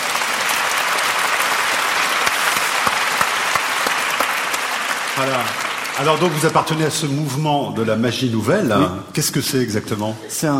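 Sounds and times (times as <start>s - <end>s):
audience applause: 0.0s - 7.4s
speech: 5.2s - 10.5s.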